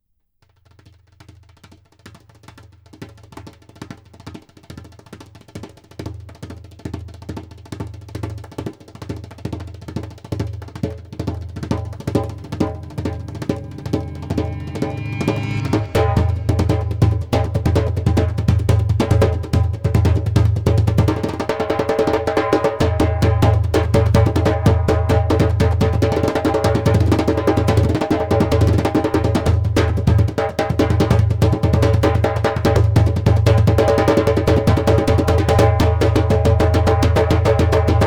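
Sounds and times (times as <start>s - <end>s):
instrumental music: 10.2s - 38.0s.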